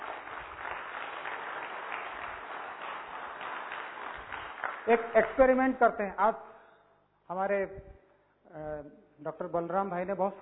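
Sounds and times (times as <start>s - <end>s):
audience clapping loudly: 0.0s - 5.7s
speech: 4.8s - 6.5s, 7.3s - 10.4s.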